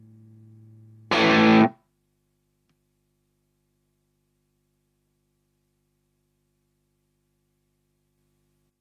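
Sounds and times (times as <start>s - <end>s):
Strat electric guitar with clean or crunch tone: 1.0s - 1.8s.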